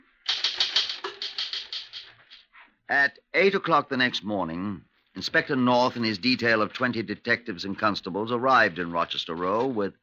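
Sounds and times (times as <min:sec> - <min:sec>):
typewriter typing: 0:00.0 - 0:02.5
speech: 0:02.9 - 0:10.0.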